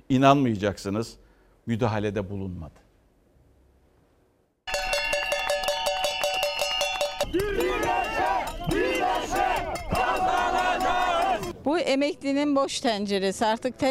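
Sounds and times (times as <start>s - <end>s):
speech: 0.1s - 2.8s, 11.6s - 13.9s
steady shrill tones: 4.7s - 11.5s
pensioners' protest crowd chanting: 7.0s - 11.5s.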